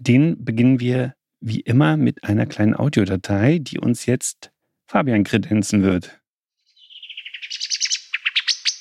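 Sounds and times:
speech: 0:00.0 - 0:06.2
common blackbird alarm call: 0:06.7 - 0:08.7.

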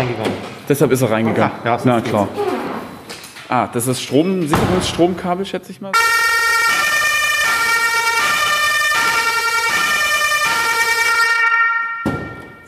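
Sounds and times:
speech: 0:00.0 - 0:02.5, 0:03.5 - 0:06.2
electronic ambulance siren wailing in a two-tone pattern: 0:06.0 - 0:12.6.

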